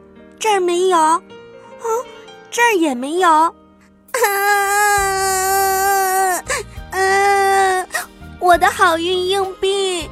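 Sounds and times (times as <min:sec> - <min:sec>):
speech: 0:00.4 - 0:03.6, 0:08.4 - 0:10.1
child crying: 0:04.2 - 0:08.7.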